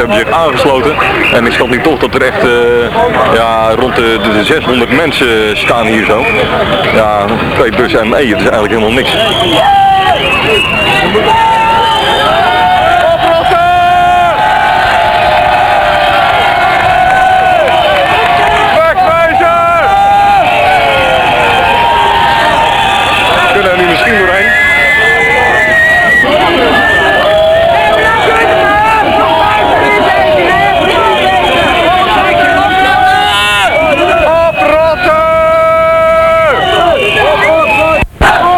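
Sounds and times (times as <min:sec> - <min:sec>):
speech: 0:00.0 - 0:11.5
large demonstration crowd shouting and cheering: 0:00.0 - 0:38.5.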